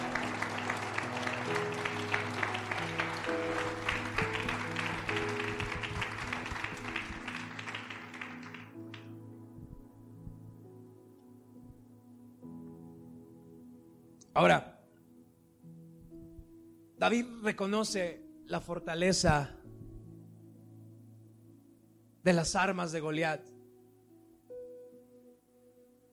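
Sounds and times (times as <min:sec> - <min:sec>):
crowd applauding: 0:00.0 - 0:09.2
sustained low musical drone: 0:00.0 - 0:13.9
speech: 0:14.4 - 0:14.7, 0:17.0 - 0:19.6, 0:22.2 - 0:23.5.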